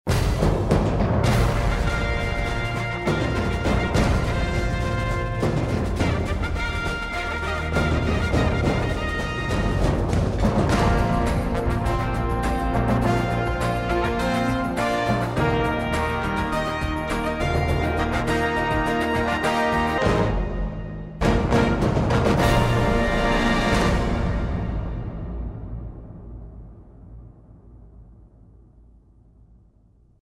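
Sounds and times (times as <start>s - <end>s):
battle music: 0.1s - 26.5s.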